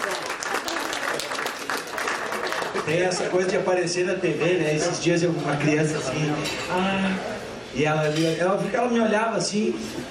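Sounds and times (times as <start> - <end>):
audience applause: 0.0 - 3.1
speech: 2.9 - 10.0.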